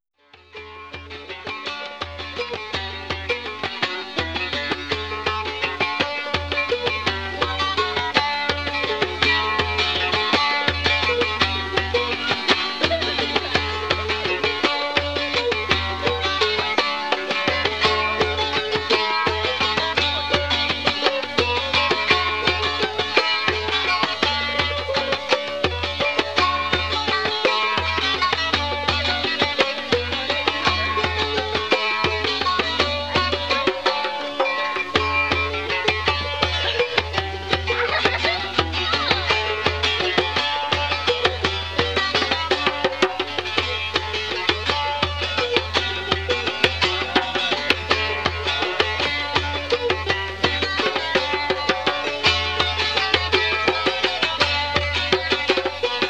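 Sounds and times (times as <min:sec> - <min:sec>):
mazurka: 0:00.3 - 0:56.0
laughter: 0:12.0 - 0:14.4, 0:37.4 - 0:39.8.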